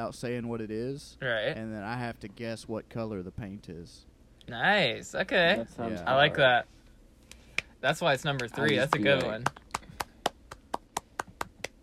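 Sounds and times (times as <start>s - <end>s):
speech: 0.0s - 6.8s, 7.8s - 9.6s
one person clapping hands: 7.3s - 7.7s, 8.3s - 11.8s.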